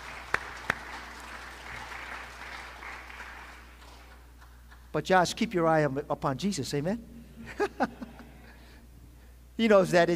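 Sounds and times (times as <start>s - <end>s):
audience clapping: 0.0s - 4.9s
speech: 5.0s - 8.0s, 9.6s - 10.1s
laughter: 7.4s - 8.7s.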